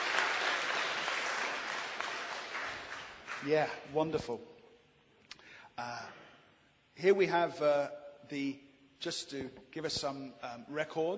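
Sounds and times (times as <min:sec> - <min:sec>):
crowd clapping: 0:00.0 - 0:03.9
speech: 0:03.4 - 0:04.5, 0:05.8 - 0:06.1, 0:07.0 - 0:11.1.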